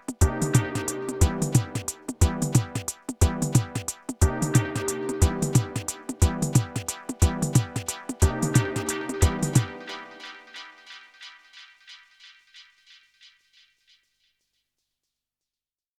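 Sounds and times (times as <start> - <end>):
Korg drumlogue drum machine steppa beat: 0.0 - 9.8.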